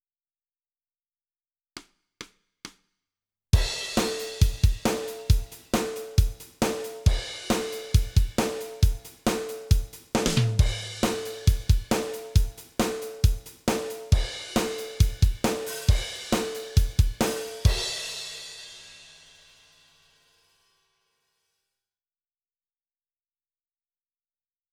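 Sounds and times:
drums: 3.6s - 20.5s.

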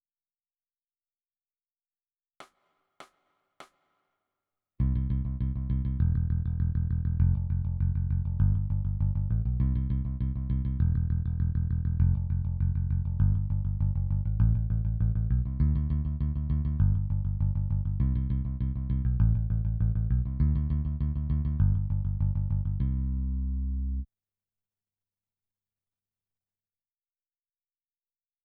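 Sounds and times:
bass: 4.8s - 24.1s.

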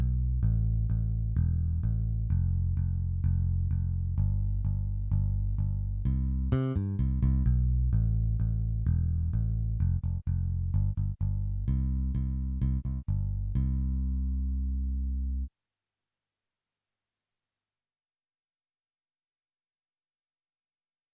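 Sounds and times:
bass: 0.0s - 15.5s.

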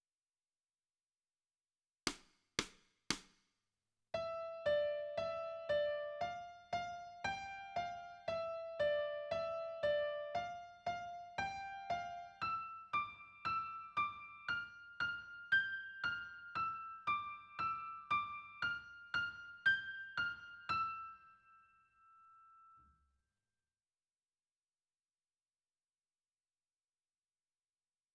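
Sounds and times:
piano: 4.1s - 23.0s.

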